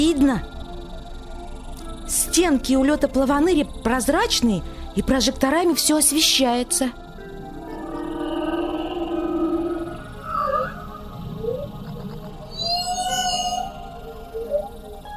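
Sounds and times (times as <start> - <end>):
speech: 0.0 - 0.6, 2.1 - 7.0
blue whale vocalization: 7.2 - 15.1.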